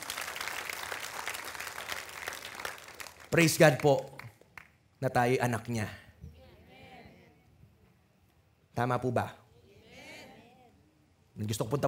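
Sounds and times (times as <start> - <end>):
church congregation applauding in praise of God: 0.0 - 4.8
speech: 3.3 - 4.1, 5.0 - 6.0, 8.8 - 9.4, 11.4 - 11.8.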